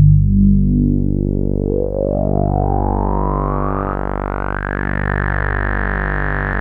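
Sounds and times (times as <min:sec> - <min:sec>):
Prophet 5 synthesizer note G1: 0:00.0 - 0:06.5.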